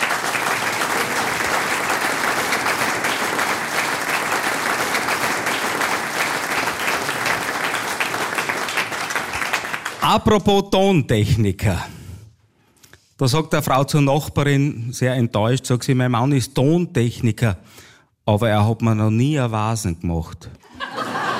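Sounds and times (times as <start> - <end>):
audience applause: 0.0 - 10.2
speech: 10.0 - 11.9, 13.2 - 20.6
laughter: 20.6 - 21.3.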